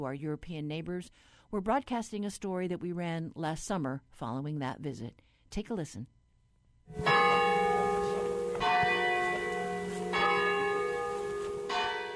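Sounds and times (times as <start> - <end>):
speech: 0.0 - 6.2, 6.9 - 7.5
Ermenville Church Tower bells pealing: 6.9 - 12.1.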